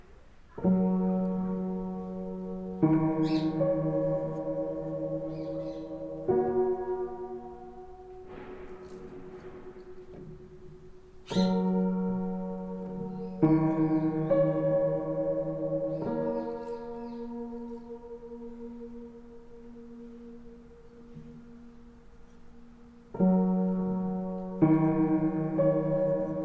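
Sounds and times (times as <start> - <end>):
child playing piano: 0.0 - 26.4.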